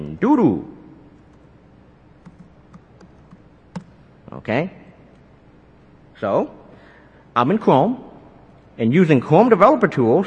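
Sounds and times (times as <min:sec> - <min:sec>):
speech: 0:00.2 - 0:00.7, 0:04.4 - 0:04.8, 0:06.2 - 0:06.6, 0:07.4 - 0:08.1, 0:08.8 - 0:10.2
typing on a computer keyboard to enter text into a web page: 0:02.2 - 0:03.9.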